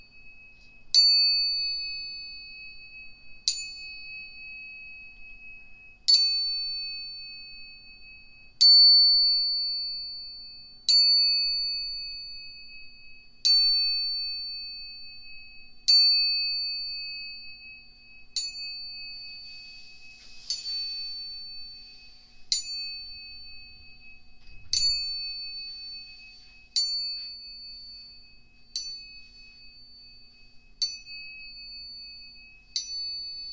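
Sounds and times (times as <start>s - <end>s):
two tuning forks struck: 0.0s - 33.5s
brief rustle: 19.3s - 22.0s.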